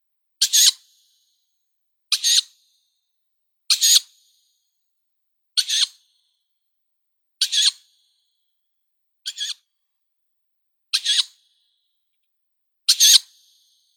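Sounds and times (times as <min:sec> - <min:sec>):
Strix aluco fledglings calling: 0:00.4 - 0:00.8, 0:02.1 - 0:02.5, 0:03.7 - 0:04.1, 0:05.6 - 0:06.0, 0:07.4 - 0:07.8, 0:09.3 - 0:09.6, 0:11.0 - 0:11.4, 0:12.9 - 0:13.3.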